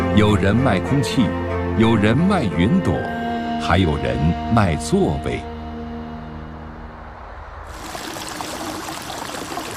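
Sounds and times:
speech: 0:00.2 - 0:05.5
stream of flowing water: 0:07.6 - 0:09.7.

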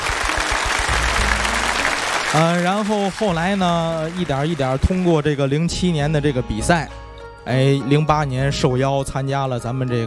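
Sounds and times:
audience applause for a first-place winner: 0:00.0 - 0:05.4
speech: 0:02.3 - 0:10.0.

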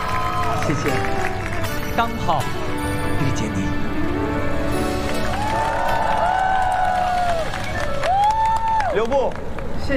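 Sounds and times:
audience applause: 0:00.0 - 0:02.2, 0:04.8 - 0:09.9
speech: 0:00.7 - 0:01.2, 0:02.0 - 0:02.6, 0:03.2 - 0:03.9, 0:09.0 - 0:09.9.

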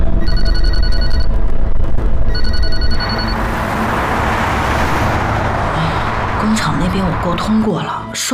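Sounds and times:
telephone ringing: 0:00.1 - 0:01.4, 0:02.3 - 0:03.3
car engine rumble: 0:01.4 - 0:08.2.

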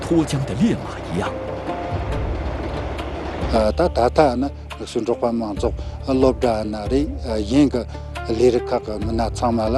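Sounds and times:
train roaring past: 0:00.0 - 0:04.8
speech: 0:00.1 - 0:01.5, 0:03.5 - 0:09.7.

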